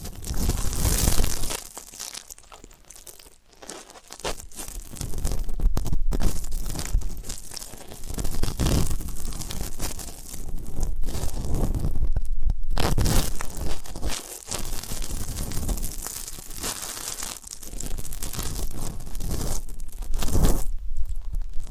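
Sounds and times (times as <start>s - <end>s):
close ASMR ear-cleaning crackling, scratching and crinkling: 0.0s - 21.6s
soft low rumble: 4.4s - 16.6s, 17.6s - 21.6s.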